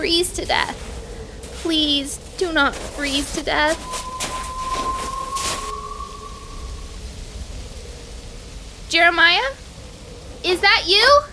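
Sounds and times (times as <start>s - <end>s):
speech: 0.0s - 0.9s, 1.6s - 4.1s, 8.9s - 9.6s, 10.4s - 11.3s
roaring hissing wind of a snowstorm: 0.0s - 11.3s
person whistling a long note: 2.8s - 7.9s.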